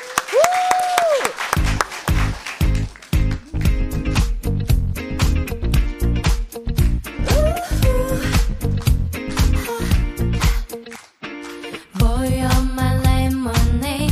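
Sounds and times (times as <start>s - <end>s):
audience applause: 0.0s - 3.6s
punchy rhythmic bass-heavy beat: 1.6s - 10.8s, 12.0s - 14.1s.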